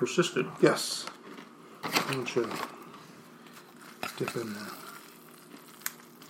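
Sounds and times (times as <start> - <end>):
speech: 0.0 - 1.2, 1.9 - 2.8, 4.2 - 4.8
molten cheese bubbling and sizzling in a pan: 3.3 - 6.2.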